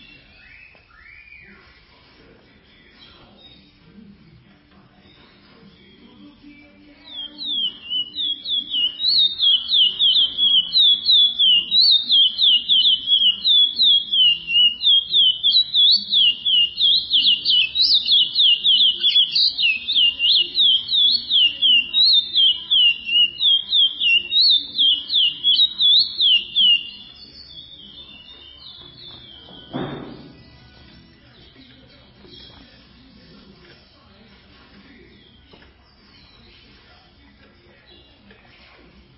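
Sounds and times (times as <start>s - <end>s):
chestnut-bellied seed finch singing: 0.0s - 1.6s, 5.0s - 30.0s, 31.2s - 32.8s.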